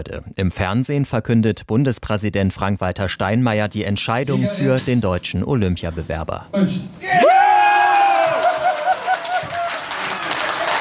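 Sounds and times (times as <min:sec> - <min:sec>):
speech: 0:00.0 - 0:07.6
crowd of Olympic supporters cheering and applauding in a hotel: 0:07.2 - 0:10.8.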